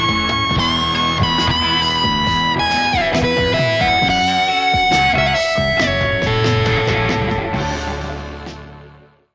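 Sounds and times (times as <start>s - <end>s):
Stratocaster electric guitar through a hot JCM800 amplifier: 0.0s - 9.2s.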